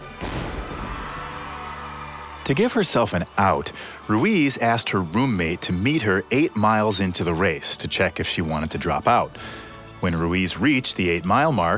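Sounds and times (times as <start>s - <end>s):
starting cannon firing: 0.0s - 1.3s
speech: 2.4s - 11.7s.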